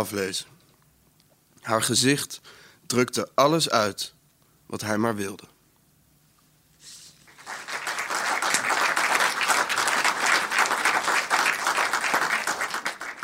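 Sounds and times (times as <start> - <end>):
speech: 0.0 - 0.6, 1.6 - 5.5
audience applause: 7.3 - 13.2.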